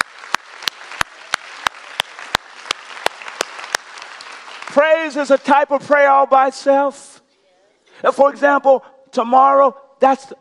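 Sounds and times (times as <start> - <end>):
audience clapping: 0.0 - 5.7
speech: 4.8 - 7.2, 8.0 - 10.4.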